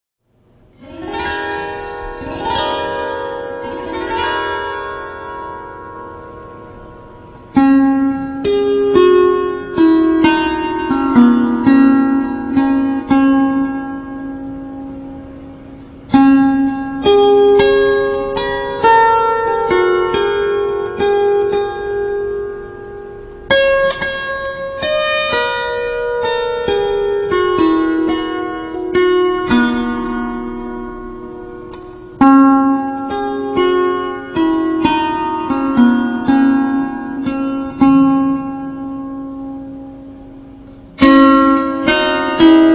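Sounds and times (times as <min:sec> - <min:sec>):
harp music: 0:00.7 - 0:42.7.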